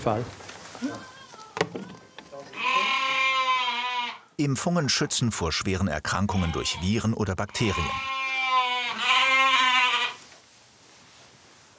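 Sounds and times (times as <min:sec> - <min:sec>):
speech: 0:00.0 - 0:01.9, 0:04.4 - 0:08.2
small Ouessant sheep bleating: 0:02.3 - 0:04.4, 0:06.2 - 0:10.2.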